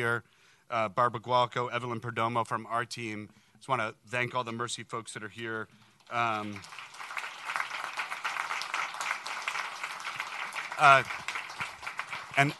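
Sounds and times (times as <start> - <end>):
speech: 0.0 - 6.9, 10.8 - 11.2, 12.4 - 12.5
audience applause: 6.1 - 12.5.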